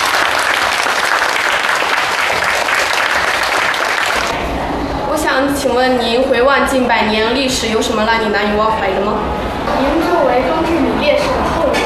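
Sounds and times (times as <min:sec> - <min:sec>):
classroom applause: 0:00.0 - 0:04.4
speech: 0:05.6 - 0:11.8.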